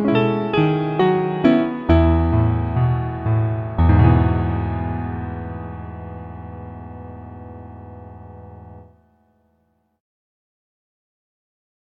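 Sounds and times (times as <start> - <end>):
piano music: 0.0 - 9.5.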